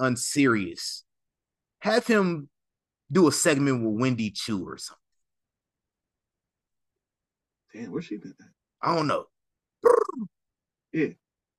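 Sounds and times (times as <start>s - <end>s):
speech: 0.0s - 1.1s, 1.8s - 2.5s, 3.1s - 5.0s, 7.7s - 11.2s
voice imitating a bird call: 9.8s - 10.3s.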